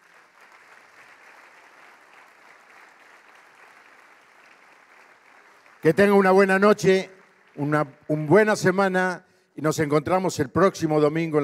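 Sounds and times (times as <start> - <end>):
audience applause: 0.0 - 8.8
speech: 5.8 - 11.4.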